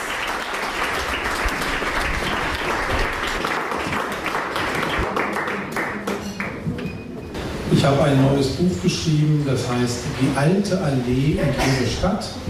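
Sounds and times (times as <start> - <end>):
audience applause at a German literary reading with musicians: 0.0 - 6.7
speech: 7.8 - 12.4.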